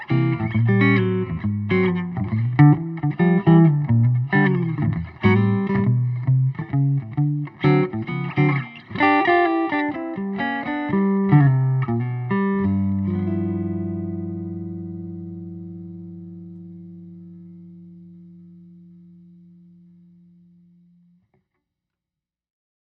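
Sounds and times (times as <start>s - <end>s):
electric archtop guitar of wenge and spruce through an amp: 0.0s - 21.2s.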